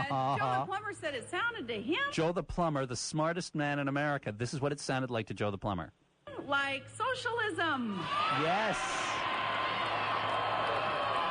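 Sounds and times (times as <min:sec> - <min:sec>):
speech: 0:00.1 - 0:09.1
crowd cheering and applauding: 0:08.0 - 0:11.2.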